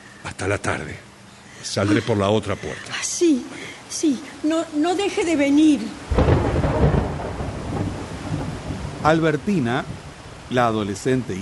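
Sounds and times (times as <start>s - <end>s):
speech: 0.4s - 6.3s, 9.0s - 11.4s
heavy rain: 1.9s - 11.4s
thunder: 6.1s - 10.2s.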